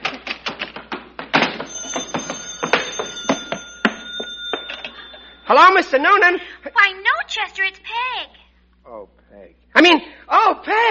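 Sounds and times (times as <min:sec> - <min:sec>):
old telephone bell ringing: 0:01.7 - 0:06.2
speech: 0:05.5 - 0:07.9, 0:09.8 - 0:10.8.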